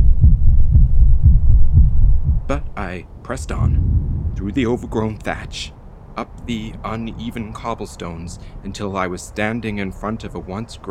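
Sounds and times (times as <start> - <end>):
heartbeat thumping: 0.0 - 2.8, 3.4 - 5.1
speech: 2.5 - 10.8.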